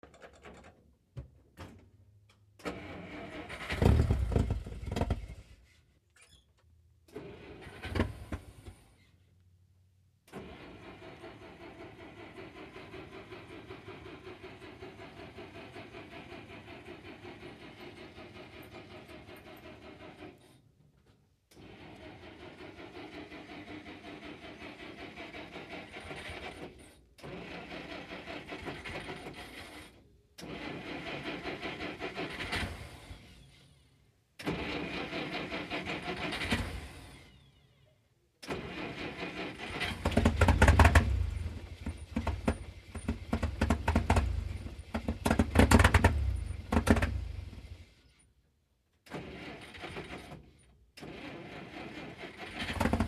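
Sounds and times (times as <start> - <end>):
Dodge Power Wagon fire truck engine false and rough starts: 2.3 - 6.0, 7.0 - 9.2, 9.9 - 53.0.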